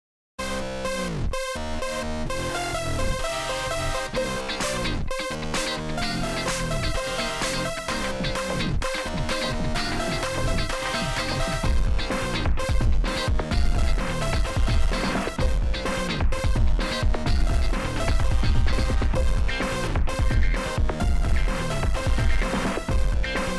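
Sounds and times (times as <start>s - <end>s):
techno music: 0.4s - 23.5s.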